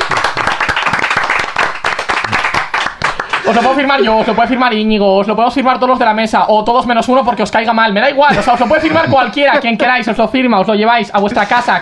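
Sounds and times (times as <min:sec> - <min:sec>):
audience applause: 0:00.0 - 0:04.4
laughter: 0:03.2 - 0:04.8, 0:08.3 - 0:10.1
speech: 0:03.5 - 0:11.8.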